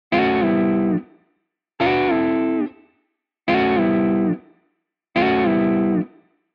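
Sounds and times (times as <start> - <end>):
guitar pattern: 0.1 - 1.1, 1.8 - 2.9, 3.5 - 4.5, 5.2 - 6.2.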